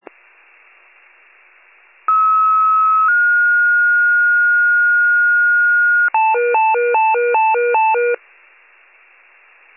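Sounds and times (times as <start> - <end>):
fire pager alert: 2.1 - 4.7, 5.3 - 8.2.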